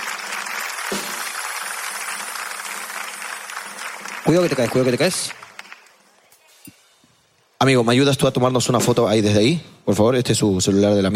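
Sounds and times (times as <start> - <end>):
audience applause: 0.0 - 6.0
speech: 4.3 - 5.4, 7.6 - 11.1.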